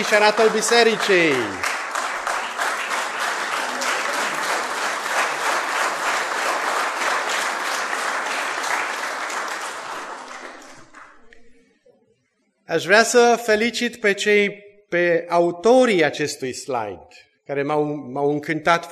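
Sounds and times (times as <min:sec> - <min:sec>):
speech: 0:00.0 - 0:01.7, 0:12.7 - 0:18.9
church congregation applauding in welcome: 0:00.0 - 0:11.4.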